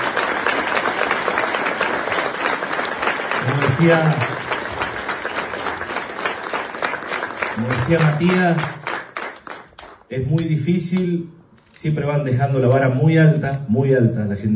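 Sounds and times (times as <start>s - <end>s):
audience applause: 0.0s - 10.1s
speech: 3.8s - 4.4s, 7.6s - 8.8s, 10.1s - 14.5s.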